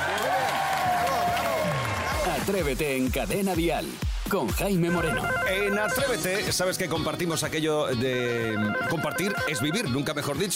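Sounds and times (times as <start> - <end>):
applause: 0.0 - 2.7
speech: 2.5 - 10.5.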